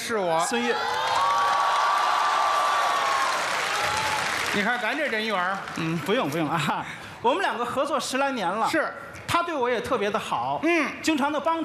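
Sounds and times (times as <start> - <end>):
speech: 0.1 - 1.2, 4.5 - 11.6
theater audience applause: 0.6 - 6.8.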